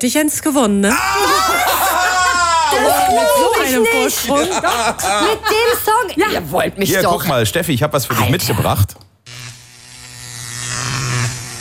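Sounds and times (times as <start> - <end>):
speech: 0.0 - 1.8, 2.7 - 9.0
laughter: 1.0 - 7.2
electric shaver buzzing: 9.2 - 11.5.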